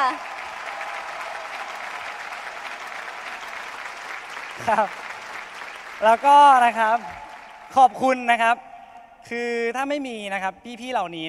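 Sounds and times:
speech: 0.0 - 0.3, 4.6 - 5.1, 6.0 - 11.2
audience applause: 0.0 - 8.0.

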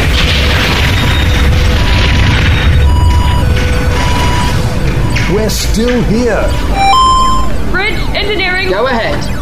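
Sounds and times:
heavy explosion of flagship fire striking a spaceship: 0.0 - 8.2
speech: 5.4 - 6.8, 8.2 - 9.3.

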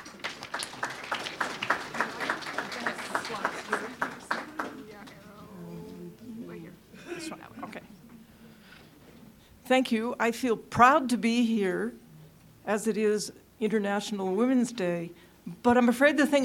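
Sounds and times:
applause greeting a speaker at a lecture on women in science: 0.0 - 5.4
speech: 9.7 - 12.0, 12.7 - 16.4.

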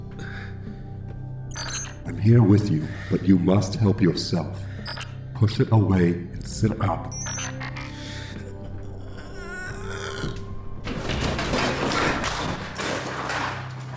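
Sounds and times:
speech: 1.6 - 4.7, 5.4 - 7.2
refrigerator toppling over to the side: 9.7 - 13.9.

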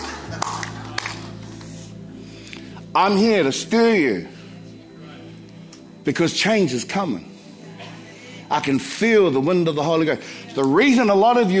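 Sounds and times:
half-hearted clapping: 0.0 - 1.8
laughter: 0.0 - 1.9, 7.7 - 8.5
speech: 2.9 - 4.4, 6.0 - 7.3, 8.5 - 11.5.

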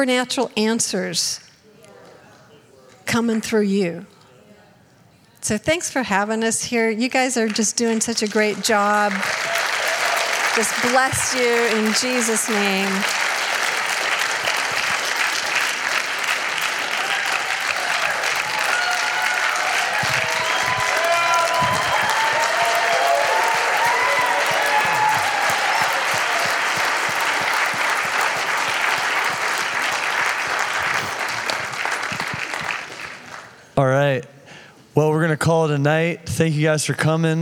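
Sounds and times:
speech: 0.0 - 1.5, 3.1 - 4.2, 5.4 - 9.5, 10.6 - 13.2, 35.8 - 37.3
audience clapping: 7.4 - 33.8.

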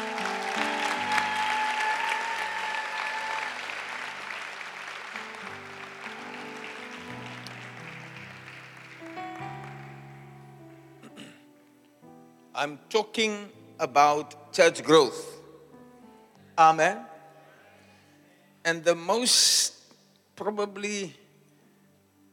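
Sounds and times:
audience applauding: 0.0 - 10.4
speech: 12.6 - 15.3, 16.6 - 17.1, 18.6 - 19.8, 20.4 - 21.2.

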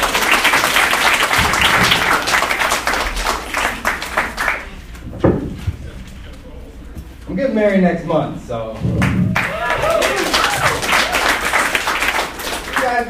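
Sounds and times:
audience applause: 0.0 - 4.8, 9.0 - 13.0
speech: 7.6 - 9.1.

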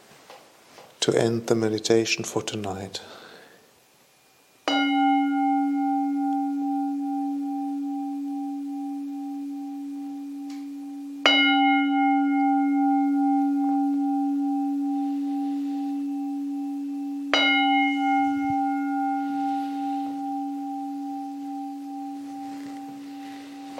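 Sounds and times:
speech: 1.0 - 3.2
meditation bell struck to close a session: 4.7 - 23.7.

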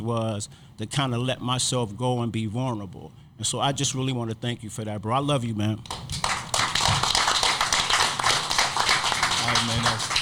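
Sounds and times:
speech: 0.0 - 6.2
audience applause: 5.9 - 10.2.

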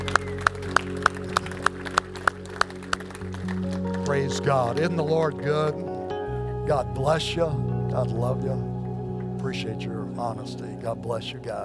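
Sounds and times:
hand claps: 0.0 - 5.2
speech: 4.1 - 5.9, 6.7 - 8.7, 9.4 - 11.6.

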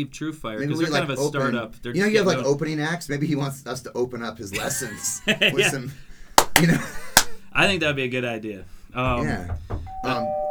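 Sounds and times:
people's voices: 0.0 - 10.4
speech: 0.0 - 10.4
laughter: 0.6 - 1.6, 4.4 - 7.5
doorbell ringing: 9.9 - 10.4.

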